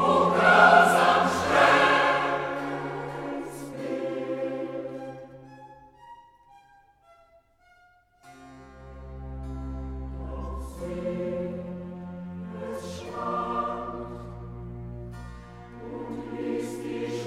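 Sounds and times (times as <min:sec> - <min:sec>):
choir singing: 0:00.0 - 0:05.5, 0:09.9 - 0:17.2.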